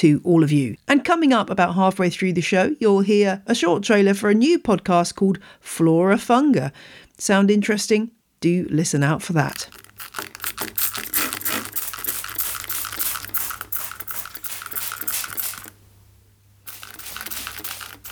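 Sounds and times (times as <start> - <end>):
speech: 0.0 - 10.3
plant mister spraying water: 9.5 - 15.8, 16.6 - 18.1.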